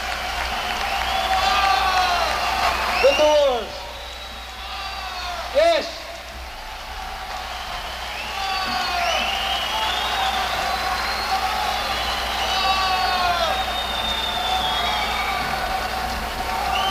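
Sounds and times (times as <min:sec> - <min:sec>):
crowd applause and cheering: 0:00.0 - 0:16.9
shrill whistles: 0:00.2 - 0:05.3, 0:07.2 - 0:16.9.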